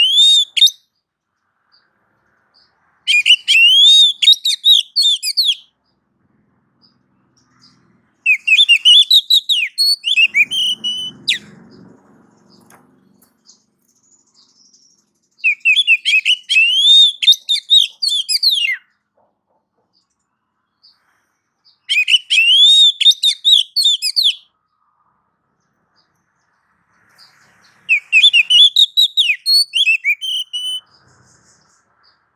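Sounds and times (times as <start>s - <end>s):
Oriental magpie-robin chirping whistles: 0.0s - 0.9s, 3.0s - 5.7s, 8.2s - 11.5s, 13.5s - 18.9s, 21.7s - 24.5s, 27.9s - 32.2s.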